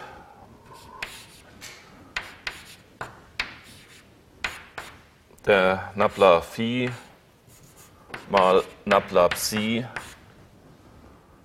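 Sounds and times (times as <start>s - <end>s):
writing on a board: 0.8s - 1.5s, 2.2s - 5.0s, 6.1s - 10.2s
speech: 5.4s - 7.1s, 8.3s - 10.0s.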